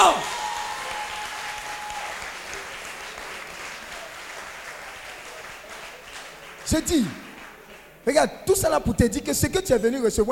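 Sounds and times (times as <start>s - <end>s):
church congregation applauding in acclamation of God: 0.0s - 8.1s
speech: 6.7s - 7.2s, 8.0s - 10.3s.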